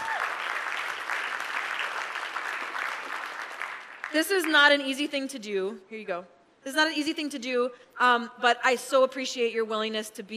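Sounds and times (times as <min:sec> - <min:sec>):
audience applause: 0:00.0 - 0:04.2
speech: 0:04.1 - 0:10.3.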